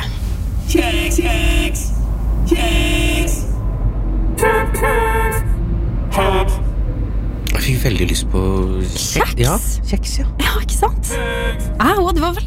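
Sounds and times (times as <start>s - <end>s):
idling traffic rumble: 0.0s - 12.4s
car horns honking in a traffic jam: 0.7s - 3.6s, 4.3s - 6.9s, 11.0s - 12.4s
speech: 0.8s - 1.9s, 2.5s - 3.4s, 7.8s - 12.4s.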